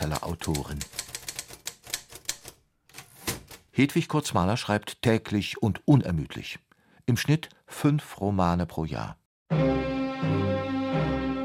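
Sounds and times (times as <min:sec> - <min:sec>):
speech: 0:00.0 - 0:01.0, 0:03.8 - 0:11.2
Hedwig Courths-Mahler's original typewriter typing, archive in Nebra: 0:00.0 - 0:03.6.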